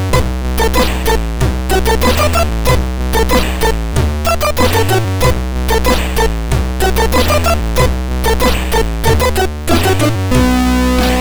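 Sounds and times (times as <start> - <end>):
chiptune music on a SID MOS6581R2 chip: 0.1 - 11.1.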